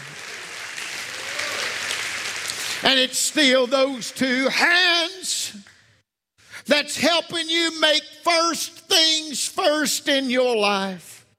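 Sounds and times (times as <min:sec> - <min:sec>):
church congregation clapping hands in praise: 0:00.0 - 0:05.9
speech: 0:02.8 - 0:05.6, 0:06.7 - 0:11.1.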